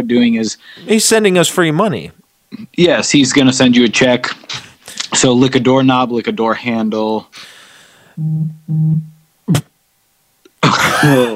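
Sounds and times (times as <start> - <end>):
speech: 0.0 - 7.6, 8.2 - 9.7, 10.6 - 11.3
person sneezing: 10.6 - 11.3.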